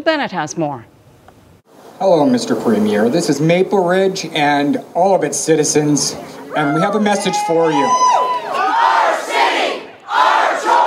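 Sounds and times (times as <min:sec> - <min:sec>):
speech: 0:00.0 - 0:00.9, 0:02.0 - 0:08.2
large protest crowd shouting in unison: 0:06.5 - 0:10.8.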